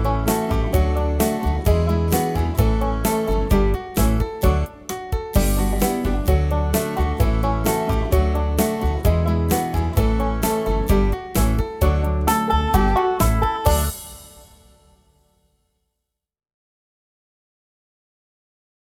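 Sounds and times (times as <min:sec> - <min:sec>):
instrumental music: 0:00.0 - 0:15.1.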